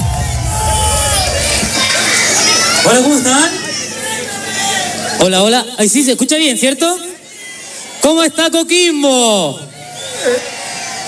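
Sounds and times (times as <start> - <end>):
audience applause and cheering: 0.0 - 5.2
speech: 2.8 - 3.6, 5.2 - 7.1, 8.0 - 10.5.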